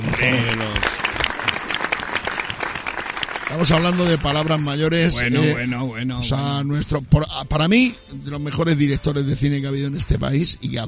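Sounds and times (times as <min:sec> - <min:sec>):
audience applause: 0:00.0 - 0:05.1
speech: 0:00.2 - 0:00.8, 0:03.5 - 0:10.8.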